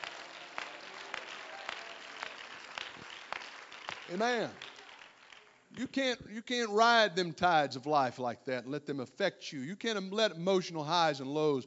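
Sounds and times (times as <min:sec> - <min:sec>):
audience clapping hands: 0:00.0 - 0:06.0
speech: 0:04.1 - 0:04.7, 0:05.8 - 0:11.6.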